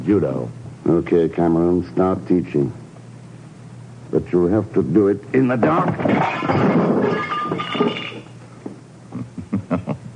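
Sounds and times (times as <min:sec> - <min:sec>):
speech: 0:00.1 - 0:02.8, 0:04.1 - 0:07.9
lamp smashing: 0:05.6 - 0:08.4.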